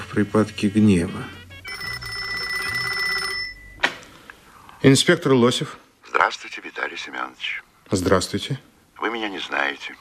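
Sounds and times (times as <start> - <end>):
speech: 0.2 - 1.4, 4.8 - 9.9
telephone ringing: 0.4 - 3.8.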